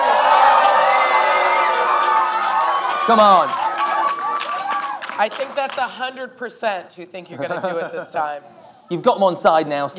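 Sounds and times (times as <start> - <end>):
crowd cheering encouragement: 0.0 - 5.8
speech: 3.1 - 3.6, 5.2 - 9.9
laughter: 7.3 - 8.4.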